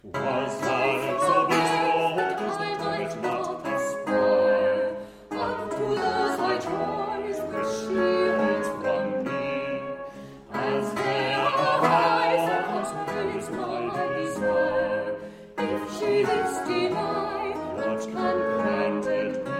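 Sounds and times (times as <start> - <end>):
viola da gamba: 0.0 - 19.5.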